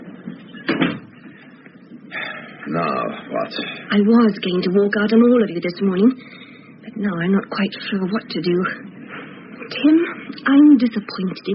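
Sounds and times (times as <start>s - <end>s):
door being closed: 0.6s - 1.1s
speech: 2.7s - 6.4s, 7.0s - 8.9s, 9.7s - 11.5s.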